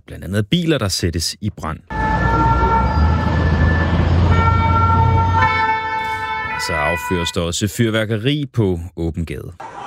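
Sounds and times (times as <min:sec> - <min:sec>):
speech: 0:00.1 - 0:02.0, 0:06.6 - 0:09.8
emergency vehicle sirens in the streets: 0:01.9 - 0:07.5.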